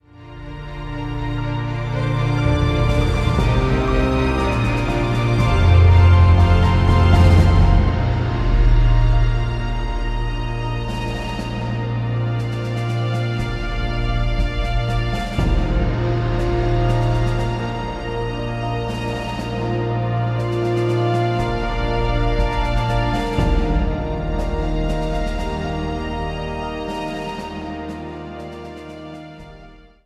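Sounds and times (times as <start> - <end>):
orchestral music: 0.0 - 30.0.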